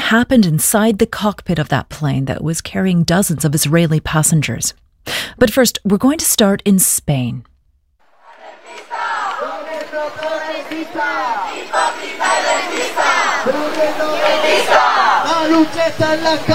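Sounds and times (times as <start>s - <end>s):
speech: 0.1s - 7.5s, 10.0s - 16.5s
noisy demonstrations in Madrid: 8.0s - 16.5s.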